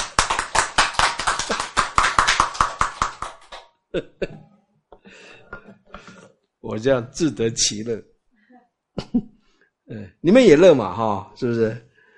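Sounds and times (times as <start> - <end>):
audience applause: 0.0 - 3.6
speech: 3.9 - 4.5, 6.7 - 8.1, 10.2 - 11.9
soft laughter: 4.0 - 4.5.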